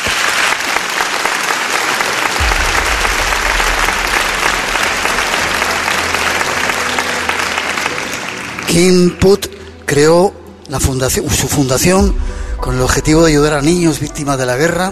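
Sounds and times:
large audience applause: 0.0 - 9.6
low rumble: 2.4 - 6.9, 12.0 - 14.8
speech: 8.7 - 14.9.

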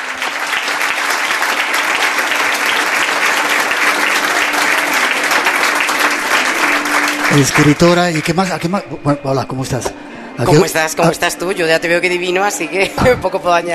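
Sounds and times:
audience applause: 0.0 - 9.0
speech: 7.3 - 13.7.

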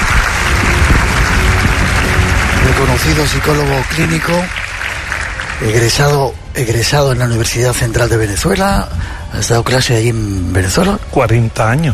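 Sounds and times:
audience applause welcoming a guest onto a Spanish show: 0.0 - 6.3
speech: 3.0 - 4.6, 5.6 - 11.9.

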